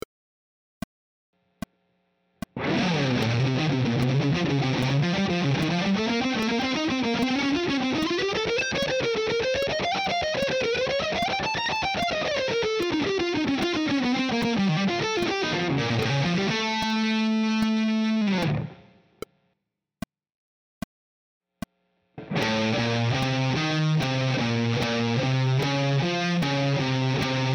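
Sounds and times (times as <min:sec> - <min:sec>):
guitar playing altered scale: 0:02.6 - 0:19.0, 0:22.2 - 0:27.5.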